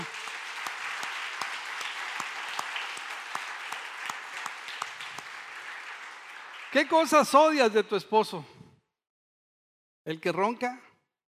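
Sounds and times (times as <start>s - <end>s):
crowd clapping: 0.0s - 7.9s
speech: 6.7s - 8.5s, 10.0s - 10.9s.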